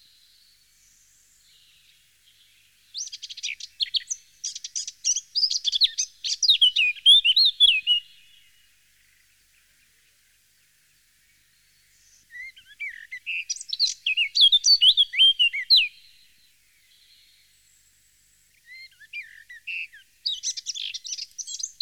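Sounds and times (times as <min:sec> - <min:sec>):
Eurasian blackcap song of quick varied warbling and rich fluty whistles: 0:01.5 - 0:08.4, 0:12.0 - 0:16.1, 0:18.6 - 0:21.8.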